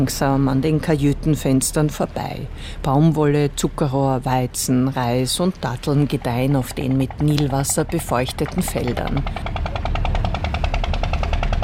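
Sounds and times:
speech: 0.0s - 9.7s
water pump engine rattling: 5.2s - 11.6s.

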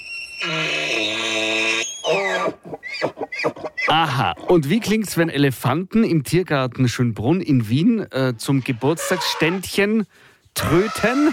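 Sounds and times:
moose calling: 0.0s - 4.6s, 8.4s - 9.8s, 10.6s - 11.3s
speech: 3.9s - 11.3s.

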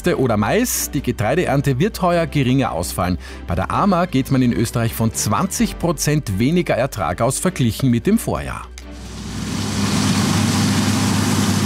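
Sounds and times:
speech: 0.0s - 8.7s
combine harvester or tractor engine running: 9.0s - 11.6s.

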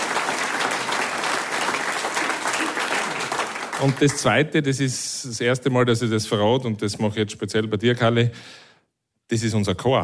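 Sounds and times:
audience applause: 0.0s - 4.5s
speech: 3.8s - 8.6s, 9.3s - 10.0s.

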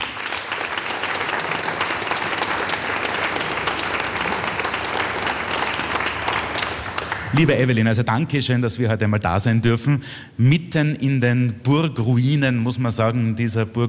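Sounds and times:
audience applause: 0.0s - 7.6s
speech: 7.3s - 13.8s.

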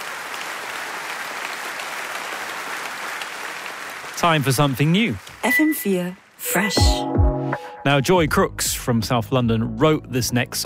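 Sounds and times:
audience applause: 0.0s - 5.6s
speech: 4.2s - 10.6s.

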